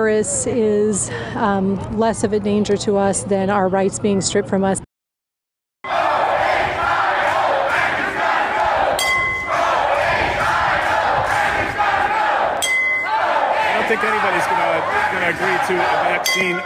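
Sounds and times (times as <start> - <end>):
speech: 0.0 - 4.9, 16.4 - 16.6
large protest crowd shouting and chanting outside the State House: 5.9 - 16.6
bright ringing clinks: 12.6 - 13.1.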